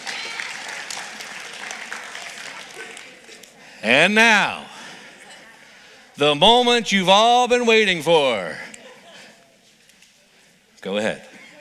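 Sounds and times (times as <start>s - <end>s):
audience applause for performers: 0.0s - 3.6s
speech: 3.8s - 4.6s, 6.2s - 8.6s, 10.8s - 11.3s.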